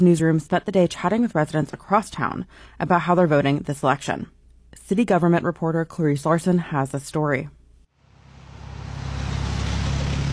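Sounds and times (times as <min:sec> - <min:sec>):
speech: 0:00.0 - 0:07.6
cars zooming past on a rain-soaked road: 0:08.0 - 0:10.3.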